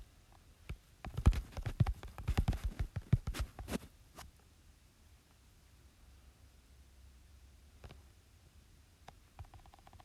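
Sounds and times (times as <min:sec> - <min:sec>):
faint low hum: 0:00.0 - 0:10.0
screen tapping and typing: 0:00.7 - 0:03.8.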